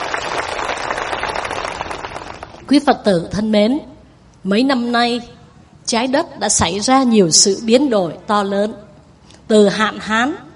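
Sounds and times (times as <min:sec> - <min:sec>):
audience applause: 0:00.0 - 0:02.6
speech: 0:02.7 - 0:08.8, 0:09.5 - 0:10.4.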